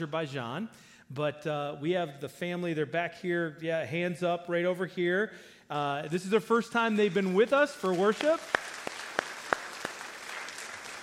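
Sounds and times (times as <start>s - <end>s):
speech: 0.0s - 8.6s
audience applause: 7.8s - 11.0s.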